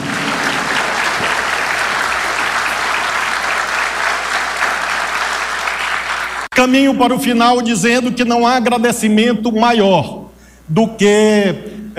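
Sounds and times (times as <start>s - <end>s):
audience applause: 0.0s - 6.5s
speech: 6.6s - 11.9s.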